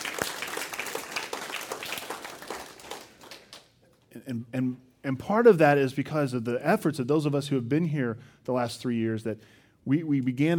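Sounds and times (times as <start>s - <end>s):
audience applauding: 0.0s - 3.7s
speech: 4.3s - 10.5s.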